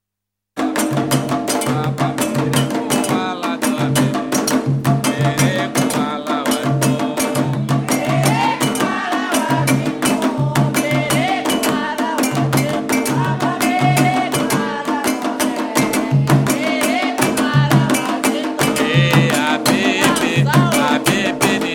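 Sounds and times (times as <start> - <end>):
candomble drumming: 0.6 - 21.7.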